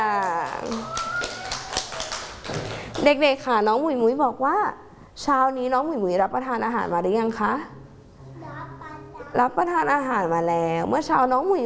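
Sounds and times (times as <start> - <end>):
children clapping hands: 0.1 - 3.1
speech: 3.0 - 7.8, 9.3 - 11.6.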